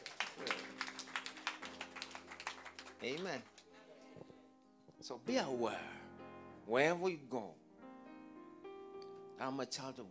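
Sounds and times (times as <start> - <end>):
audience clapping hands: 0.0 - 3.8
speech: 3.0 - 3.5, 5.0 - 6.1, 6.7 - 7.6, 9.4 - 10.0.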